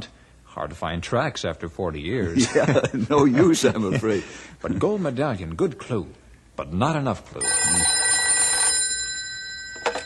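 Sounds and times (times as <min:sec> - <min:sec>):
speech: 0:00.0 - 0:08.0
telephone ringing: 0:07.4 - 0:10.0.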